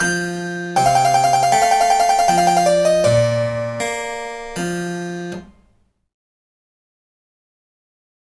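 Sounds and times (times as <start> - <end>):
fugue for harpsichord or organ: 0.8 - 5.1.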